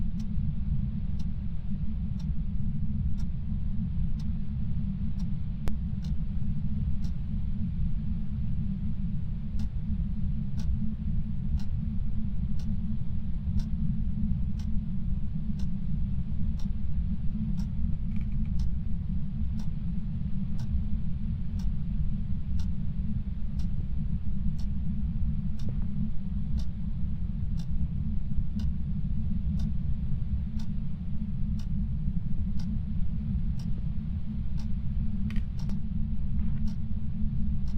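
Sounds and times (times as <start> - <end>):
ambience: 0.0 - 37.7.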